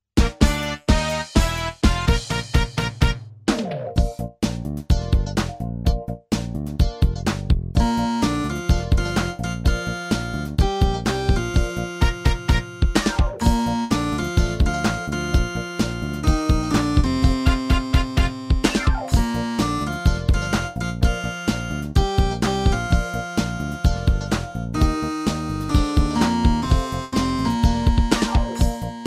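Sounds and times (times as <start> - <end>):
jazz music: 0.2 - 29.0.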